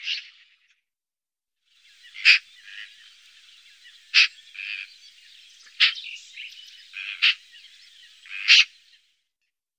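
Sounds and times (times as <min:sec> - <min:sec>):
magpie calling: 0:01.9 - 0:08.9.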